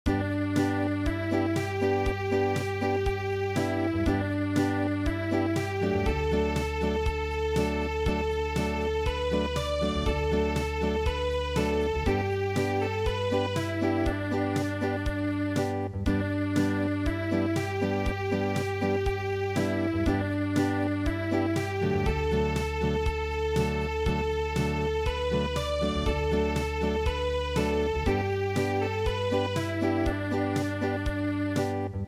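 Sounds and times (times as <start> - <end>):
unplugged midi music: 0.1 - 32.0.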